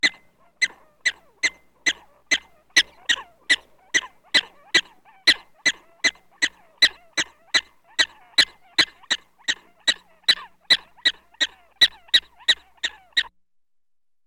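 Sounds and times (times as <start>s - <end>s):
black-tailed prairie dog barking: 0.0s - 13.3s.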